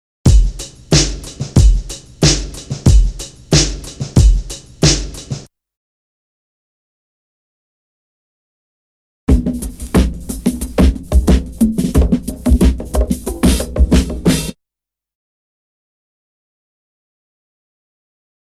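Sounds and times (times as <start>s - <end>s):
drum loop: 0.3s - 5.5s, 9.3s - 14.6s.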